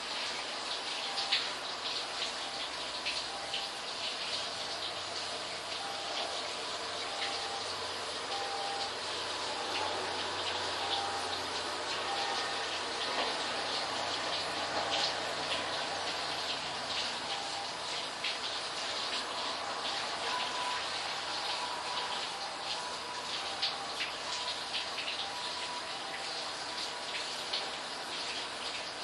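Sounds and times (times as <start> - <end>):
short middle bath siren: 0.1 - 28.9.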